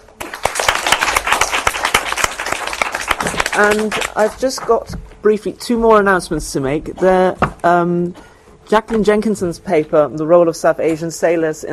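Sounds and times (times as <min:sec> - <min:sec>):
audience applause: 0:00.0 - 0:04.5
speech: 0:03.6 - 0:11.7.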